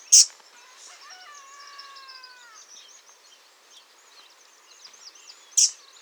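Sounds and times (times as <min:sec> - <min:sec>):
Troglodytes troglodytes: 0:00.1 - 0:02.7, 0:05.6 - 0:05.9.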